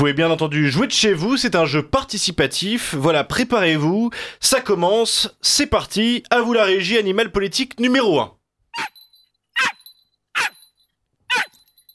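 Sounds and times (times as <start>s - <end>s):
speech: 0.0s - 9.0s
hoarse dog barking: 8.8s - 9.0s, 9.6s - 9.8s, 10.4s - 10.6s, 11.3s - 11.6s.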